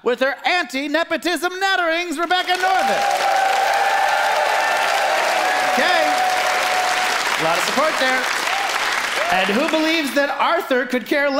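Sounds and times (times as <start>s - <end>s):
speech: 0.0s - 3.4s, 5.8s - 6.1s, 7.4s - 8.4s, 9.2s - 11.3s
audience applause: 2.4s - 10.2s
crowd cheering: 2.4s - 10.6s.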